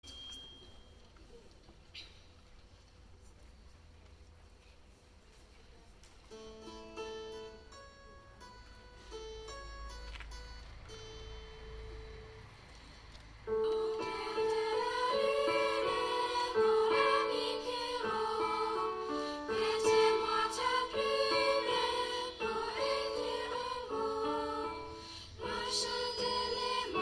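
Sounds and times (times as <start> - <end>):
lower school children's choir singing: 13.5 - 26.9.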